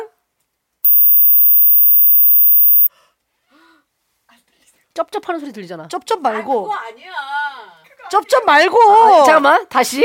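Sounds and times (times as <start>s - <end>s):
high-pitched hearing test tone: 0.8s - 2.9s
speech: 5.0s - 10.0s.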